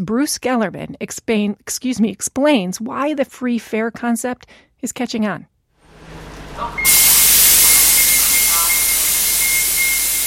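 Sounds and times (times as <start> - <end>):
speech: 0.0 - 5.5
37 bus pulling into the Lawrence Transportation Depot: 5.8 - 10.2.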